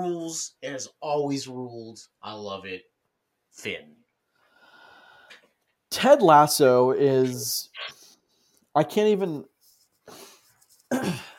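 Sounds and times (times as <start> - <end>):
speech: 0.0 - 2.9, 3.5 - 4.0, 5.9 - 8.0, 8.8 - 9.5, 10.1 - 10.3, 10.9 - 11.3
throat clearing: 10.9 - 11.3.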